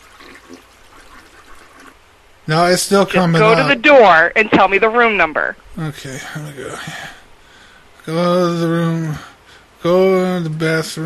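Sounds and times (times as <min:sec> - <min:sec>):
toilet flushing: 0:00.0 - 0:02.0
speech: 0:02.5 - 0:07.2, 0:08.0 - 0:11.0.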